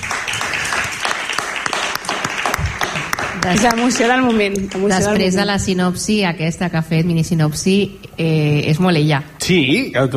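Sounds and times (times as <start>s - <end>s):
applause: 0.0s - 5.2s
speech: 3.4s - 10.1s.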